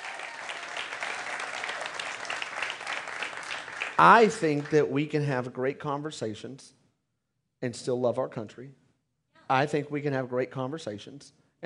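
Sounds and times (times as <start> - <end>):
audience hand clapping: 0.0 - 5.0
speech: 4.0 - 6.8, 7.6 - 8.8, 9.5 - 11.4.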